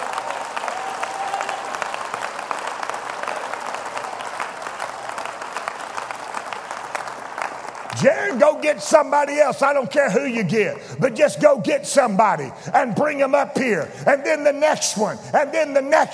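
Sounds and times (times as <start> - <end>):
audience clapping hands: 0.0 - 10.8
speech: 8.0 - 16.1.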